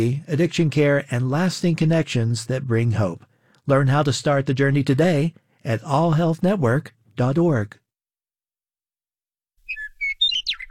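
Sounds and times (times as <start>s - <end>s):
speech: 0.0s - 7.8s
western meadowlark song: 9.6s - 10.6s.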